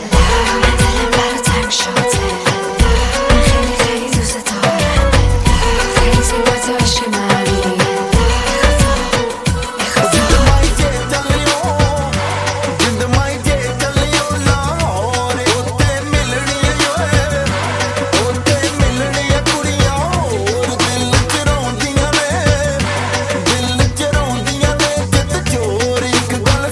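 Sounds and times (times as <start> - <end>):
Bollywood Hindi music ringtone: 0.0 - 26.7.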